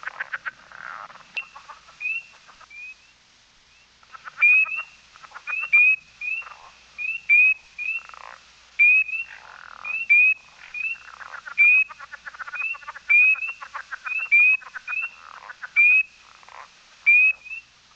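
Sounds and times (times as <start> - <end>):
tree frog of family Hylidae calling in a fast-pulsed high trill: 0.0 - 3.0, 4.0 - 17.6.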